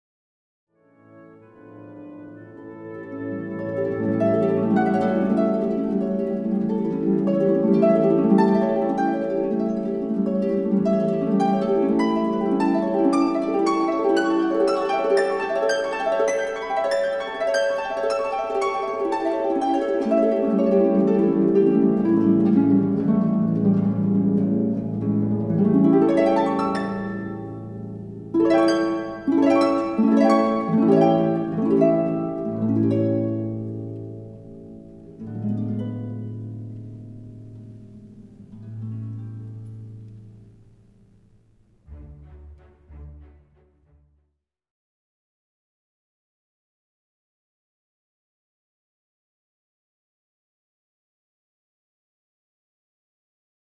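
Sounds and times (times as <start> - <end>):
harp: 0.8 - 43.6.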